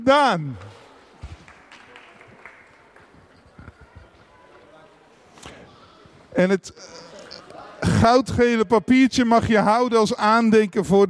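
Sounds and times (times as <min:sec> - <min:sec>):
speech: 0:00.0 - 0:00.8, 0:06.3 - 0:07.1, 0:07.8 - 0:11.0
audience applauding: 0:01.2 - 0:04.1.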